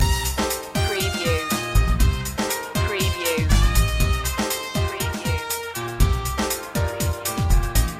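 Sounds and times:
latin music loop: 0.0s - 7.9s.

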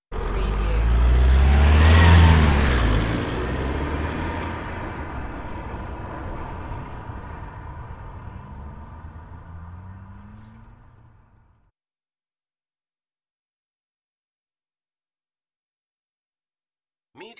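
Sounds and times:
car driving away: 0.1s - 11.7s.

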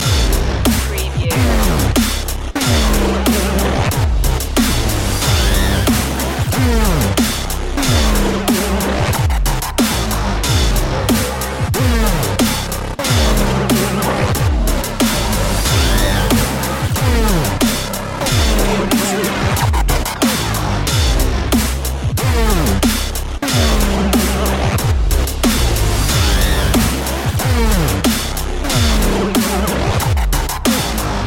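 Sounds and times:
dubstep loop of a frying CPU: 0.0s - 31.2s.

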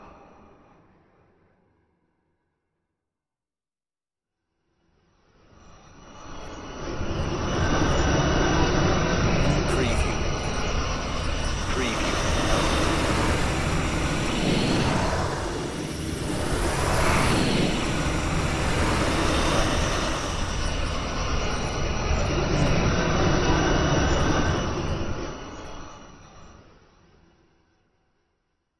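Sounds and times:
windy space anomalies ambient drone: 5.7s - 27.3s.

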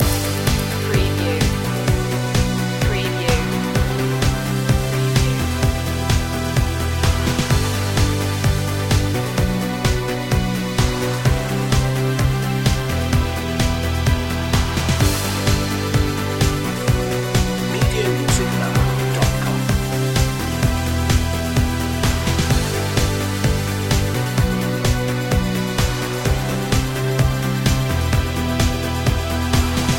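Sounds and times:
emotional driving uplifting synth-pop track: 0.0s - 29.9s.

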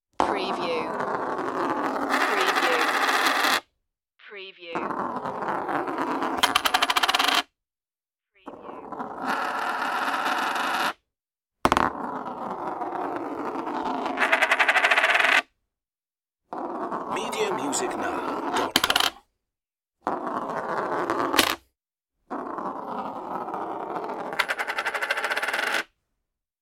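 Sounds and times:
coin rolling: 0.5s - 3.6s, 4.8s - 7.5s, 8.5s - 11.0s, 11.7s - 15.5s, 16.5s - 19.2s, 20.0s - 21.6s, 22.3s - 25.9s.

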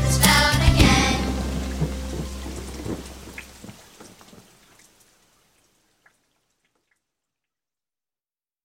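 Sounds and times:
group of children singing: 0.0s - 2.9s.

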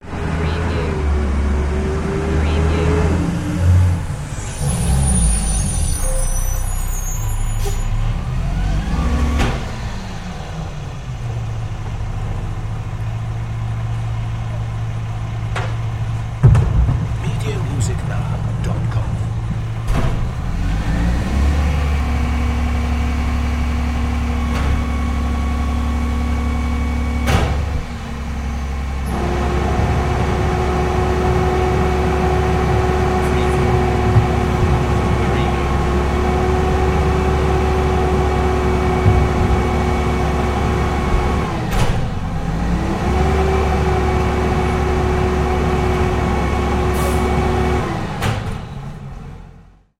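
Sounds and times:
garbage truck: 0.0s - 49.9s.

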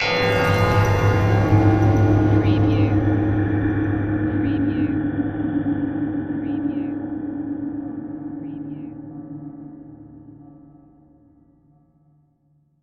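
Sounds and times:
metal hit: 0.0s - 8.3s.

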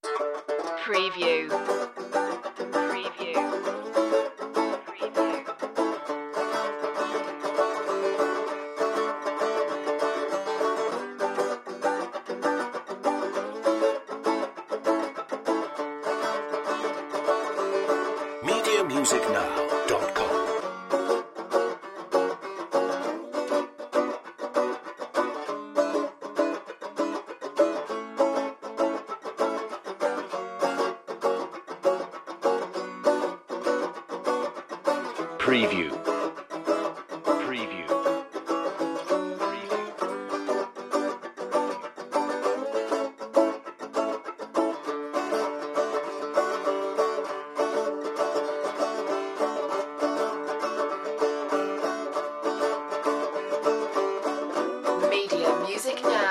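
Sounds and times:
banjo: 0.0s - 56.3s.

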